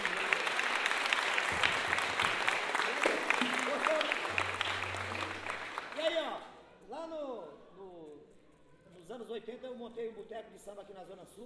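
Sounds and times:
audience applause: 0.0s - 6.3s.

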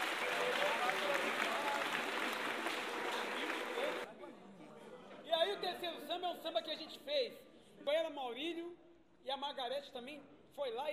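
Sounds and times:
audience applause: 0.0s - 4.1s
speech: 6.2s - 10.9s.

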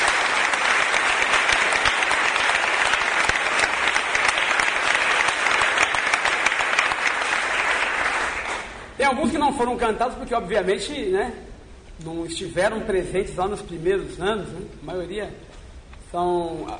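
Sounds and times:
audience applause: 0.0s - 8.9s
speech: 9.1s - 15.5s, 16.1s - 16.7s.

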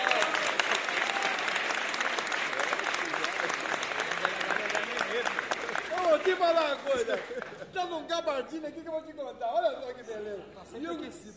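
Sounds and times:
audience applause: 0.0s - 7.6s
speech: 6.4s - 11.3s.

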